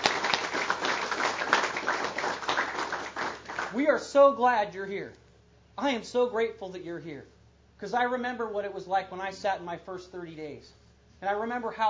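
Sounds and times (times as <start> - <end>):
audience applause: 0.0 - 3.8
speech: 3.7 - 5.2, 5.8 - 11.8.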